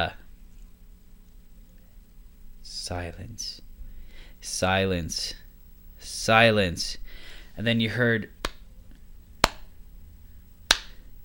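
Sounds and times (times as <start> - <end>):
speech: 0.0 - 0.2, 2.8 - 3.6, 4.4 - 5.4, 6.0 - 7.0, 7.6 - 8.4
audience hand claps: 8.4 - 8.6, 9.4 - 9.7, 10.7 - 11.0.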